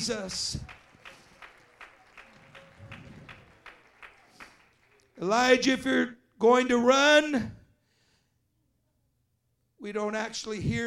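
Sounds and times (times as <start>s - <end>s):
speech: 0.0s - 0.8s, 5.2s - 7.6s, 9.8s - 10.8s
audience clapping hands in praise: 0.0s - 5.8s.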